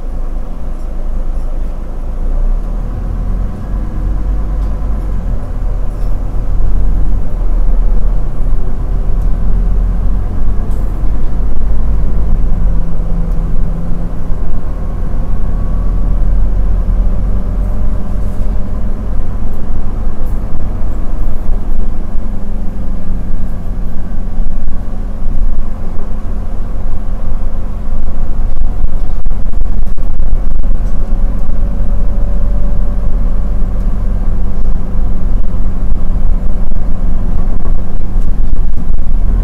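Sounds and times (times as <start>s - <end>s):
bus ride noise: 0.0s - 39.4s.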